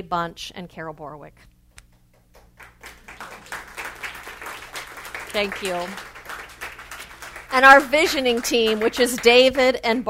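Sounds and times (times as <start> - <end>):
speech: 0.0 - 1.5, 5.3 - 6.1, 7.5 - 10.0
audience applauding: 2.3 - 10.0.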